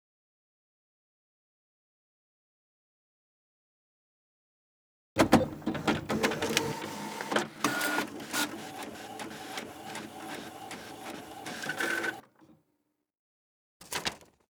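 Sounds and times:
printer: 5.2s - 12.6s.

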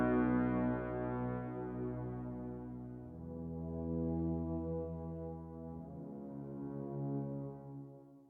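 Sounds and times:
triumphant horns: 0.0s - 6.2s.

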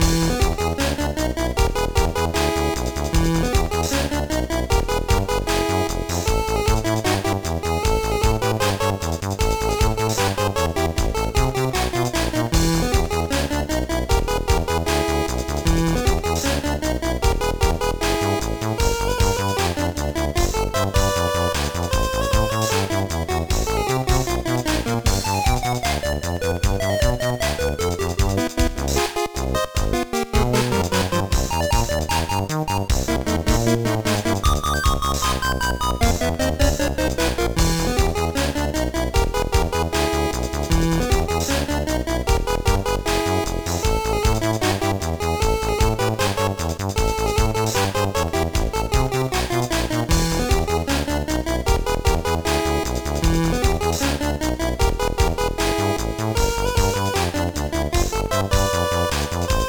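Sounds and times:
background music: 0.0s - 59.6s.

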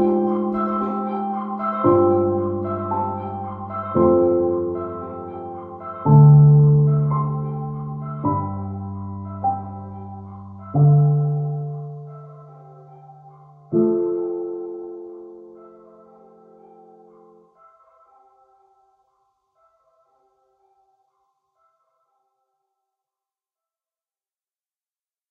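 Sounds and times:
piano: 0.0s - 18.8s.

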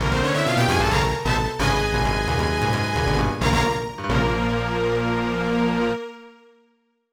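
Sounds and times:
level cleared jingle: 0.0s - 5.2s.

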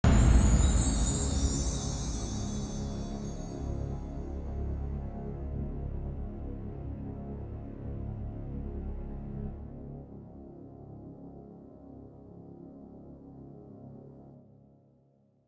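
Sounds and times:
dark bone drone: 0.0s - 10.0s.

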